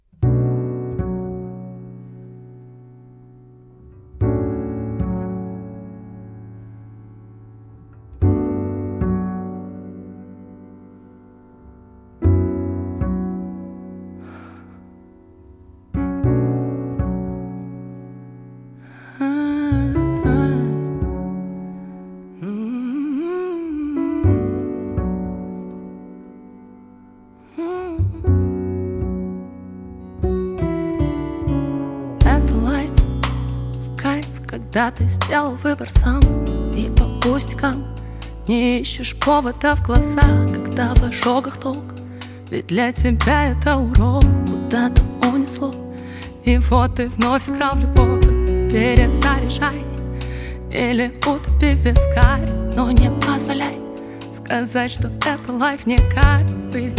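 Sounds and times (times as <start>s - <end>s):
acoustic music: 0.0s - 56.9s.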